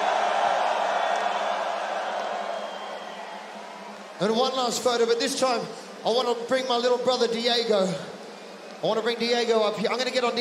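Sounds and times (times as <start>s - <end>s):
crowd screaming: 0.0s - 4.2s
speech: 4.2s - 8.2s, 8.8s - 10.3s.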